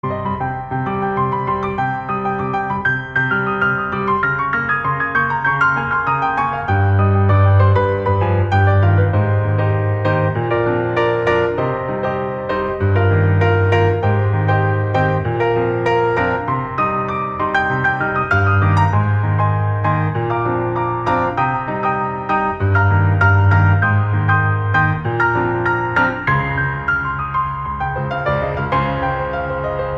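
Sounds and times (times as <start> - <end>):
solo piano: 0.0 - 29.9.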